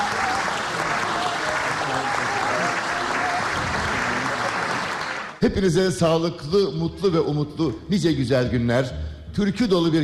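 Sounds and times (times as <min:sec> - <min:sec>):
audience applause: 0:00.0 - 0:05.4
speech: 0:05.4 - 0:10.0.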